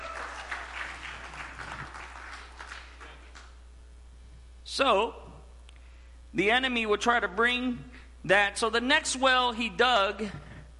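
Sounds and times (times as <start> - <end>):
audience hand clapping: 0.0 - 3.6
speech: 4.8 - 5.2, 6.3 - 10.4.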